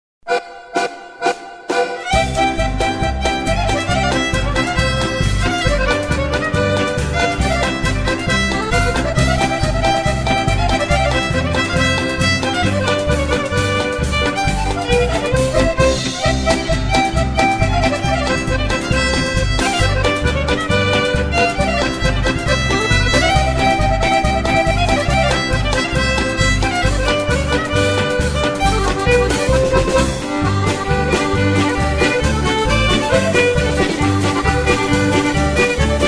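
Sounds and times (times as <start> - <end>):
polka music: 0.2 - 36.0.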